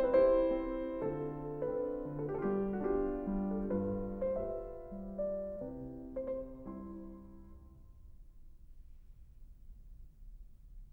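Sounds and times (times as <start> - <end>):
piano mazurka in C: 0.0 - 8.5.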